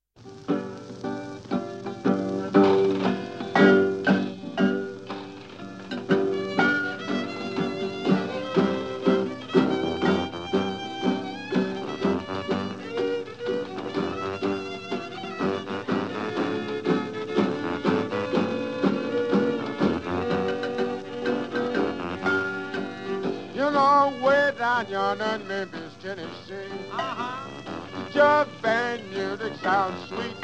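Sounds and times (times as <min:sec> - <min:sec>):
jug band music: 0:00.2 - 0:30.4.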